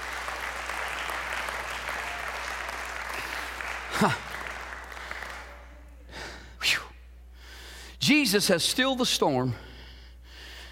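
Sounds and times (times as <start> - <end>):
audience clapping hands in praise: 0.0 - 5.8
speech: 4.0 - 4.3, 8.1 - 9.7.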